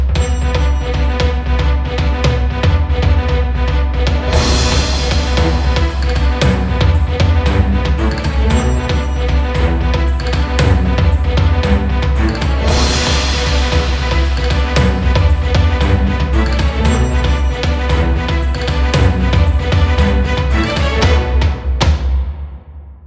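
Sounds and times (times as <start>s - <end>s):
short epic theme music: 0.2s - 22.3s.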